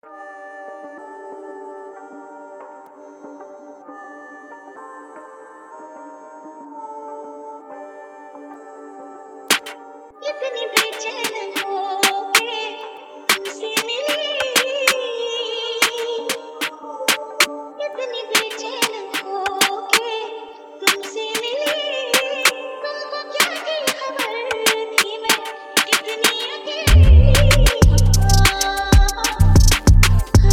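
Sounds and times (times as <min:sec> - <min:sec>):
drill music mix: 0:09.5 - 0:09.8, 0:10.8 - 0:12.4, 0:13.3 - 0:15.0, 0:15.8 - 0:17.2, 0:18.3 - 0:20.0, 0:20.9 - 0:22.6, 0:23.4 - 0:30.5.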